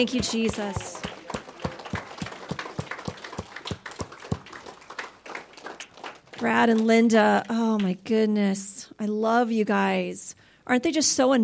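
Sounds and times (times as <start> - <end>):
speech: 0.0 - 1.1, 6.4 - 11.4
audience clapping: 0.0 - 8.0.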